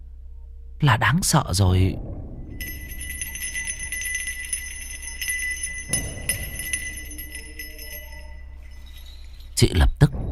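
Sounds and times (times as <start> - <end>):
speech: 0.8 - 2.7, 9.6 - 9.9
bell ringing: 2.5 - 9.6.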